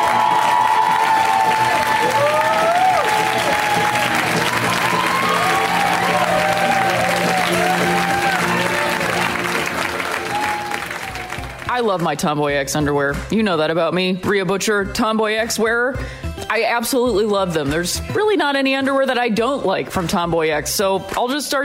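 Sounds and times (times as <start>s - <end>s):
audience whoops: 0.0s - 9.4s, 10.0s - 11.5s
audience clapping welcoming Conan O'Brien: 0.0s - 12.2s
speech: 11.8s - 21.6s.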